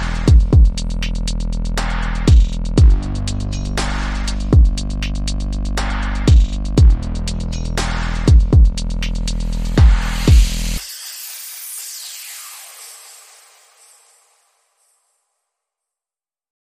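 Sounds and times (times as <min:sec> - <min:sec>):
bass: 0:00.0 - 0:10.8
drums: 0:00.0 - 0:11.0
sound effects: 0:09.0 - 0:15.1.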